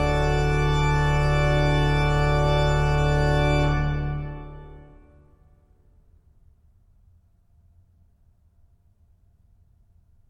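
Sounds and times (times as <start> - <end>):
organ chorale prelude: 0.0 - 5.3.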